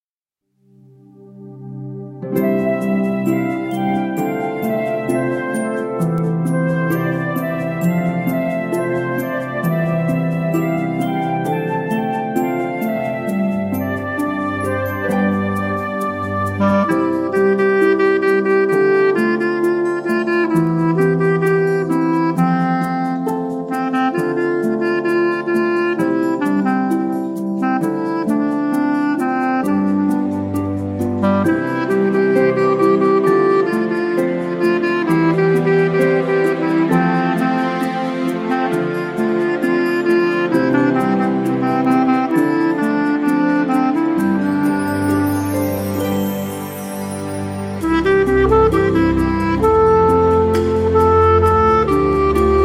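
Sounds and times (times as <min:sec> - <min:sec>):
instrumental music: 0:00.5 - 0:52.6.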